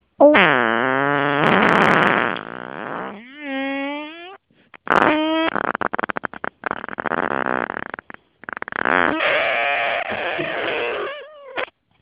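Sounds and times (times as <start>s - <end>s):
fart: 0.2s - 11.8s.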